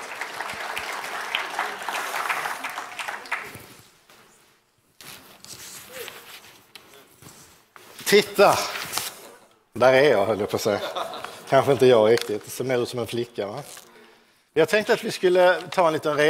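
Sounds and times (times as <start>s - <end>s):
audience applause: 0.0s - 3.8s
speech: 8.1s - 8.8s, 9.8s - 13.8s, 14.6s - 16.2s
laughter: 10.6s - 12.0s.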